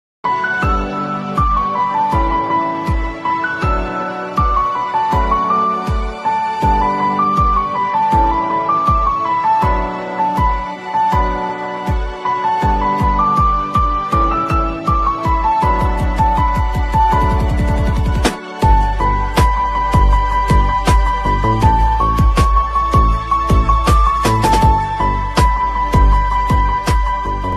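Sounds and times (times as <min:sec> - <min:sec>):
Telugu and Tamil ringtone background music: 0:00.3 - 0:27.5.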